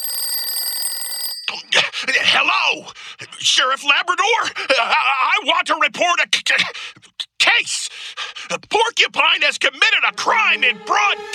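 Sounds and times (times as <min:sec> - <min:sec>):
telephone bell ringing: 0:00.0 - 0:01.7
speech: 0:01.6 - 0:11.3.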